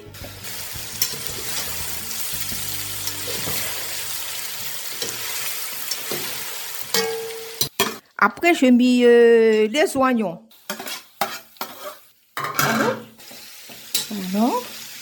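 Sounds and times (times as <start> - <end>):
pork meat frying in a pan: 0.0 - 7.9, 10.5 - 15.0
speech: 8.2 - 10.5.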